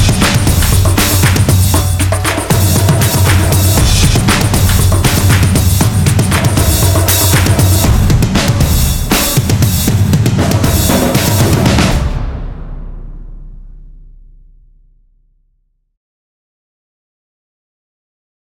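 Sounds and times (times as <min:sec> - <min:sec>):
action drum sequence: 0:00.0 - 0:14.5.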